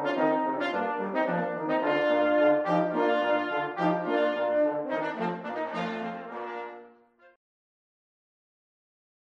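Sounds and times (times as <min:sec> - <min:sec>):
fanfare by a brass ensemble: 0:00.0 - 0:07.4.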